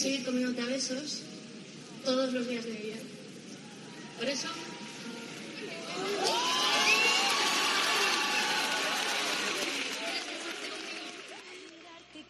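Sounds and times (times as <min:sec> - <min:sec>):
speech: 0:00.0 - 0:01.4, 0:02.0 - 0:03.2, 0:04.2 - 0:04.8
audience ovation and applause: 0:05.8 - 0:12.1.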